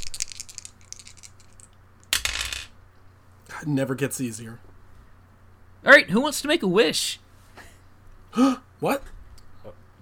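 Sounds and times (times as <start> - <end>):
dice being rolled: 0.0 - 2.7
speech: 3.6 - 4.7, 5.8 - 7.2, 8.4 - 10.0.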